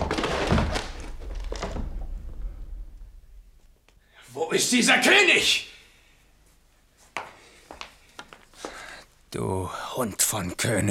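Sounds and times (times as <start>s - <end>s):
door being broken open: 0.0s - 2.5s
speech: 4.5s - 5.7s, 10.0s - 10.8s.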